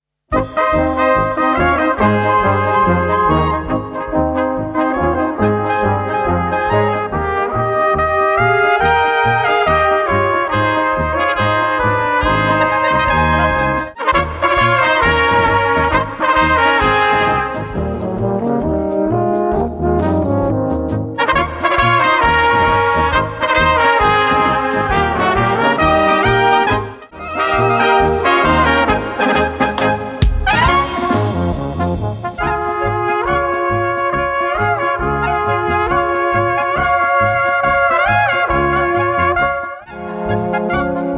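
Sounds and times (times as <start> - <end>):
polka music: 0.3 - 41.1.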